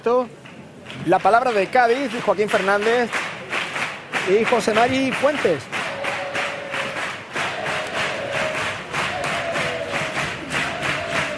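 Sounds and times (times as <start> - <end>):
speech: 0.0 - 0.4, 1.0 - 3.3, 4.2 - 5.7
theatre audience cheering at the Gran Teatro Falla during the Cádiz carnival: 5.7 - 11.3.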